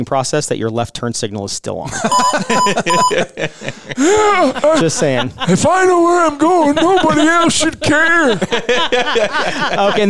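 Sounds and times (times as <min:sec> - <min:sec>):
speech: 0:00.0 - 0:10.0
laughter: 0:01.9 - 0:10.0
intercom alarm tone: 0:02.1 - 0:03.2.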